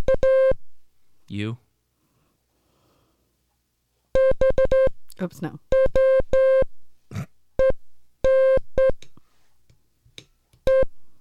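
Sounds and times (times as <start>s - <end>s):
speech: 1.3s - 1.6s, 5.2s - 5.6s
keyed Morse code tones from a straight key: 4.2s - 4.9s, 5.7s - 6.7s, 7.6s - 9.0s, 10.7s - 10.9s.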